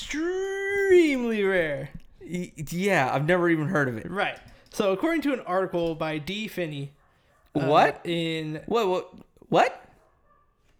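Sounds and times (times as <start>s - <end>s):
speech: 0.9s - 7.0s, 7.6s - 9.8s
dog barking: 6.9s - 8.1s, 9.7s - 10.7s.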